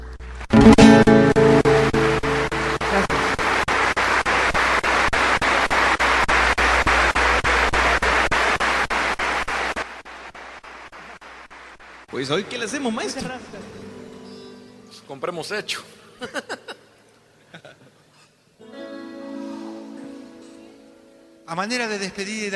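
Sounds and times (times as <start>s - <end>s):
audience applause: 0.4s - 11.9s
speech: 12.3s - 13.8s, 15.1s - 16.6s, 21.5s - 22.5s
laughter: 16.2s - 18.0s.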